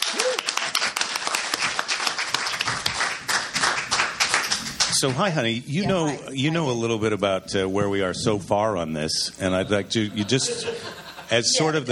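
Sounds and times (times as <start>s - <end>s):
crowd applauding: 0.0s - 5.2s
speech: 5.0s - 11.9s
laughter: 9.4s - 11.9s.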